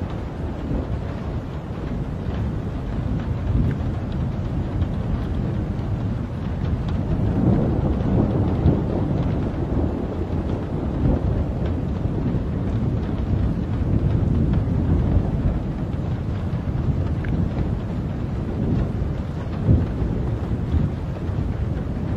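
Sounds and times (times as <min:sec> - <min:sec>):
rain in a night thunderstorm: 0:00.0 - 0:22.1
thunder in a night thunderstorm: 0:00.0 - 0:22.1.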